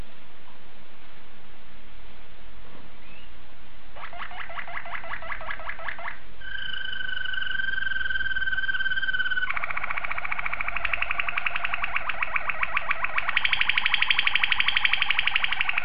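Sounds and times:
low background hum: 0.0 - 15.8
domestic canary trilling and whistling: 4.0 - 15.8.

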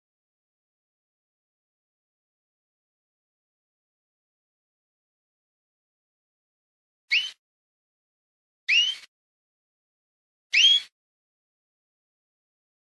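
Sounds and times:
canary song with chirps and fast buzzing trill: 7.1 - 7.4, 8.7 - 9.1, 10.5 - 10.9.

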